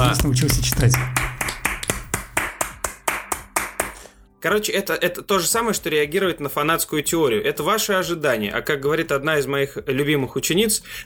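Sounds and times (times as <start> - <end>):
hands clapping: 0.0 - 4.1
speech: 0.1 - 1.2, 4.4 - 11.0.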